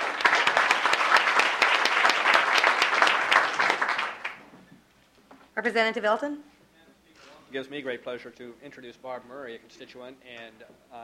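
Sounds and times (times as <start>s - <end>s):
audience applause welcoming a speaker in Juneau: 0.0s - 4.5s
speech: 5.6s - 6.5s, 7.5s - 11.0s.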